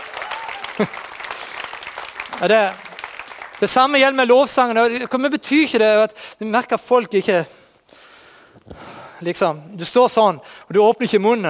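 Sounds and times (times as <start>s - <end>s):
short shouts and cheers: 0.0s - 0.9s
crowd applause: 0.0s - 4.0s
speech: 0.8s - 1.1s, 2.4s - 2.8s, 3.6s - 7.6s, 9.2s - 11.4s.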